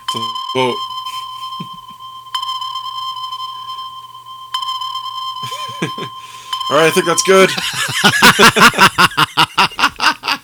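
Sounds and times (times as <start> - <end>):
sonar ping sound effect: 0.0 - 7.6
steady tonal hum: 0.0 - 10.1
speech: 0.1 - 0.9, 6.7 - 9.9
laughter: 5.4 - 6.1, 7.0 - 10.4.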